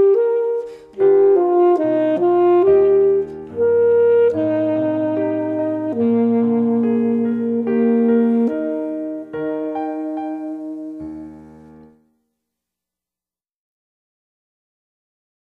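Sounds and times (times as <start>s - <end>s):
solo instrument with accompaniment: 0.0s - 12.4s.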